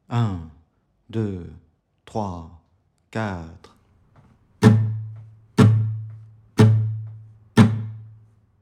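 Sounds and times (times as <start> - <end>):
musical exercise: 4.6 - 8.4.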